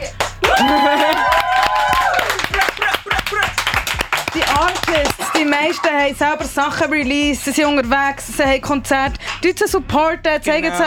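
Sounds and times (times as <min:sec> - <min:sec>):
audience applause: 0:00.4 - 0:05.9
speech: 0:05.4 - 0:10.8.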